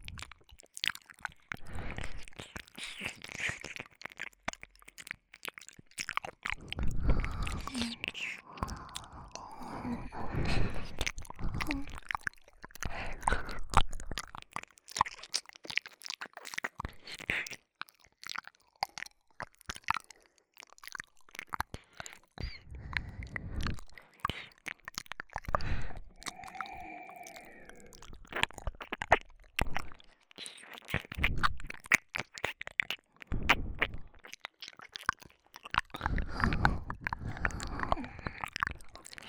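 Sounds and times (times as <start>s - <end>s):
binaural ear licking ASMR sounds: 0.0s - 39.2s.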